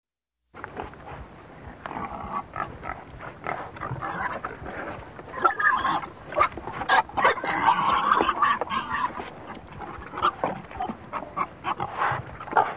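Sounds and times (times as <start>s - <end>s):
pig squealing: 3.8s - 4.5s, 5.3s - 12.7s.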